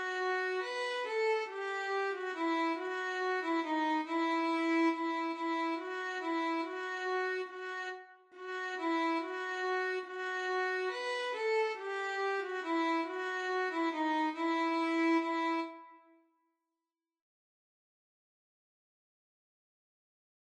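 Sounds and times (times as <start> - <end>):
siciliana violin duet: 0.0 - 15.9.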